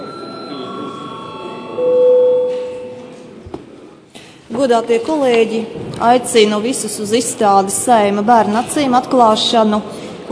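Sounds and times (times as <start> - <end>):
parliament bell ringing to signal a break: 0.0 - 3.3
speech: 4.6 - 10.3.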